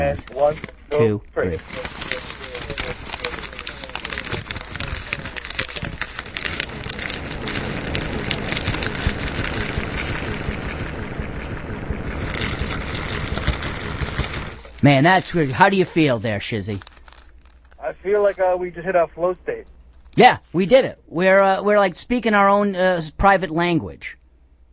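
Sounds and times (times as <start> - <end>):
crinkly paper fast-food bags crumpling: 0.0 - 18.4
speech: 0.1 - 2.3, 14.8 - 16.9, 18.0 - 24.2.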